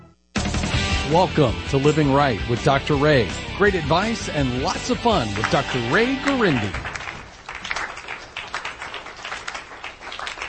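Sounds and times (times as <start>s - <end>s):
speech: 1.1s - 6.9s
studio audience applause: 4.8s - 10.4s.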